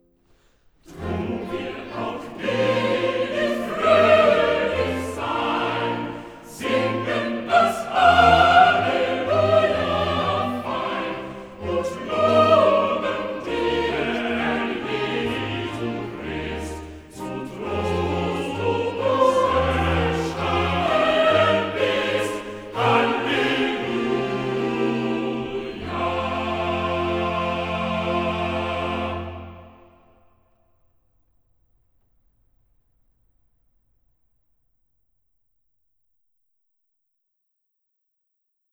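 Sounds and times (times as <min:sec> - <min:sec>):
choir singing: 0:00.8 - 0:30.4.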